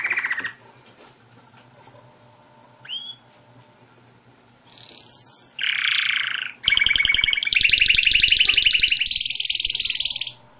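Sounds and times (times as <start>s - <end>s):
canary singing: 0.0s - 0.6s, 2.8s - 3.3s, 4.7s - 10.5s.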